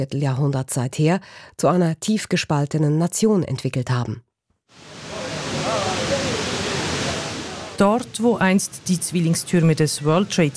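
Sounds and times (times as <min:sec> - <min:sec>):
speech: 0:00.0 - 0:04.9, 0:07.8 - 0:10.5
water cascading into memorial pools: 0:04.8 - 0:10.5.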